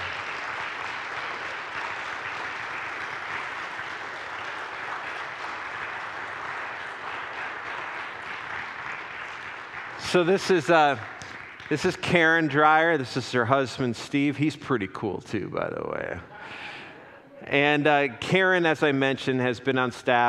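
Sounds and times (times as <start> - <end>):
crowd clapping: 0.0 - 13.3
speech: 10.1 - 11.1, 11.7 - 16.7, 17.5 - 20.2.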